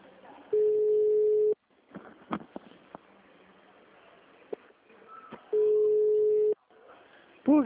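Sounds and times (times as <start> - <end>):
faint noise: 0.0 - 7.6
unanswered phone call ringback tone: 0.6 - 1.6, 5.6 - 6.6.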